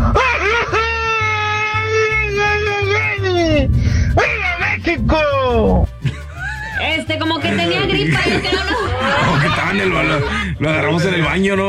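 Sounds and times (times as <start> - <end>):
laughter: 0.2 - 1.2, 6.0 - 10.7
Mexican grito shout sent as voice message: 0.2 - 4.8
speech: 9.4 - 11.6.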